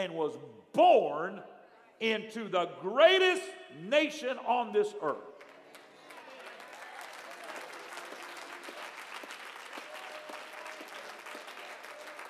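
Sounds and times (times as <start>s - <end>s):
speech: 0.0s - 5.4s
audience applause: 5.4s - 12.2s.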